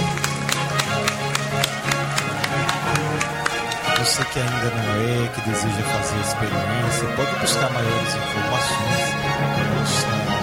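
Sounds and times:
audience applause: 0.0s - 6.0s
speech: 4.2s - 10.4s.

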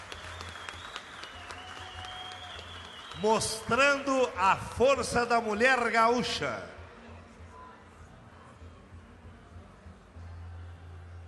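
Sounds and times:
audience applause: 0.0s - 4.4s
speech: 3.2s - 6.8s.

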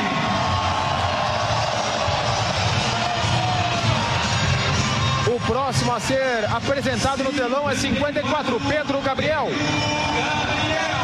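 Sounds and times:
crowd booing softly: 0.0s - 6.1s, 8.5s - 11.0s
stadium crowd applauding: 0.0s - 6.2s
speech: 5.7s - 10.9s.

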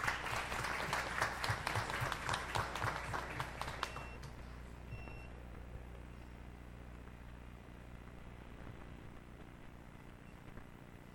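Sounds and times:
audience applause: 0.0s - 4.3s.

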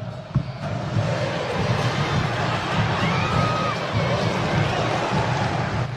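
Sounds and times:
large football crowd cheering in a stadium: 0.0s - 5.9s
football crowd whistles: 1.8s - 5.8s.

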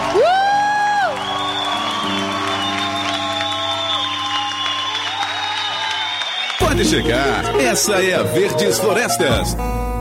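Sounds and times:
audience applause: 0.0s - 8.1s
speech: 6.8s - 9.9s.

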